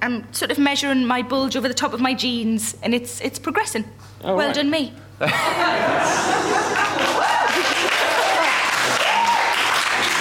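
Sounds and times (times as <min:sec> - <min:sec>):
speech: 0:00.0 - 0:07.7
laughter: 0:05.2 - 0:09.4
audience cheering and applause: 0:06.4 - 0:10.2.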